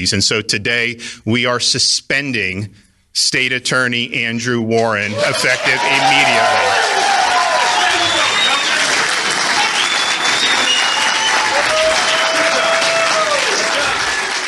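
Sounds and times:
speech: 0.0s - 7.0s
audience applause: 5.1s - 14.4s.

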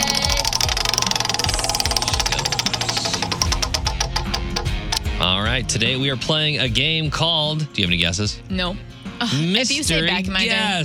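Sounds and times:
prize wheel spinning: 0.0s - 4.8s
speech: 5.2s - 10.8s.

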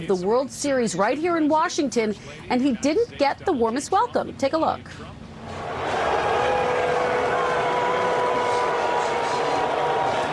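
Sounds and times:
speech: 0.0s - 5.2s
stadium crowd booing: 5.4s - 10.3s.

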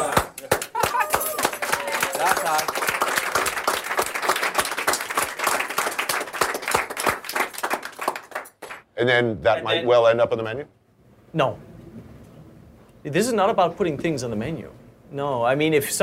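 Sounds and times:
people clapping: 0.0s - 8.9s
speech: 9.0s - 11.7s, 13.0s - 16.0s.

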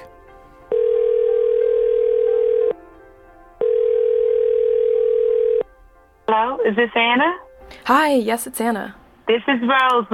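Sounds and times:
telephone dial tone for outgoing call: 0.7s - 2.8s, 3.6s - 5.7s
speech: 6.7s - 10.1s.

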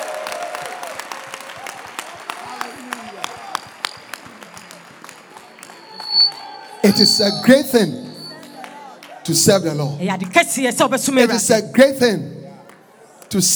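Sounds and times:
audience clapping: 0.0s - 10.4s, 11.2s - 13.5s
voices calling and murmuring: 5.6s - 13.5s
speech: 6.8s - 8.1s, 9.3s - 12.4s, 13.3s - 13.5s.

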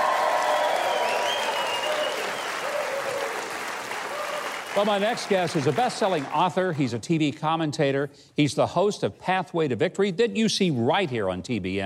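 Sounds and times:
studio audience applause for a music group on a TV show: 0.0s - 7.0s
speech: 4.8s - 11.8s.

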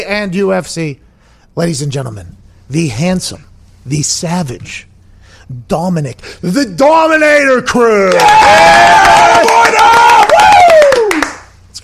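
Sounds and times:
speech: 0.0s - 4.9s, 5.5s - 9.7s
crowd applause and cheering: 8.1s - 11.5s.

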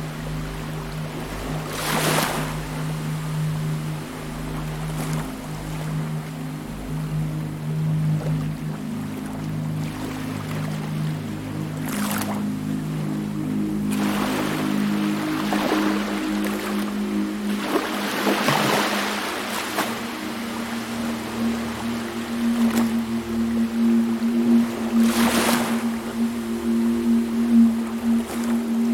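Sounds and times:
steady low drone like a boat engine: 0.0s - 28.9s
short bright washes of surf or splashing: 13.9s - 28.9s.

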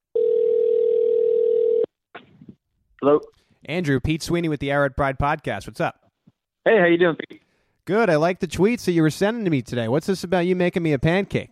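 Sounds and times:
telephone dial tone: 0.2s - 1.9s
speech: 3.0s - 6.0s, 6.6s - 11.5s.

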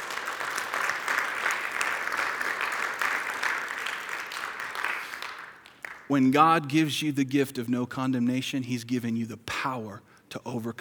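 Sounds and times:
audience applause: 0.0s - 6.1s
speech: 6.1s - 10.7s.

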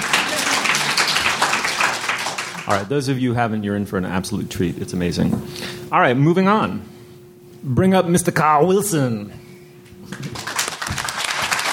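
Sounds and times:
audience clapping: 0.0s - 2.9s, 10.1s - 11.7s
speech: 2.7s - 7.0s, 7.6s - 9.4s.

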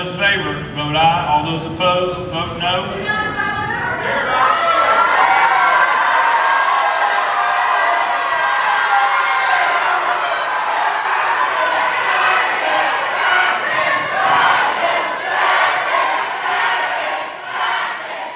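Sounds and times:
speech: 0.1s - 3.4s
crowd chanting in galleries: 3.0s - 18.3s
people shouting fascists: 3.1s - 18.3s.

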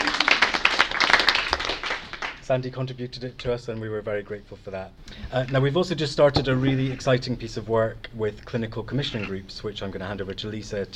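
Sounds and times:
audience applause: 0.0s - 2.4s
speech: 2.5s - 10.9s.

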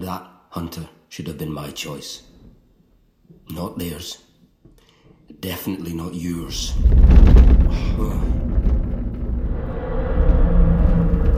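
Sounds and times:
speech: 0.0s - 2.3s, 3.5s - 4.3s, 5.3s - 8.4s
deep rumbling boom: 6.4s - 11.3s.

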